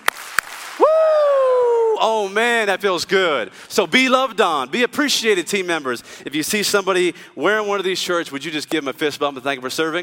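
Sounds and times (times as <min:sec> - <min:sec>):
audience clapping: 0:00.0 - 0:01.0
audience giving a Ric Flair woo: 0:00.7 - 0:02.1
speech: 0:02.0 - 0:10.0.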